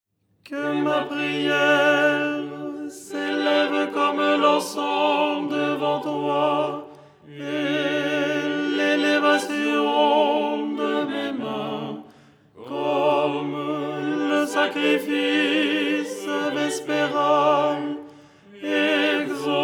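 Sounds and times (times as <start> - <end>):
tenor singing: 0.5 - 19.6.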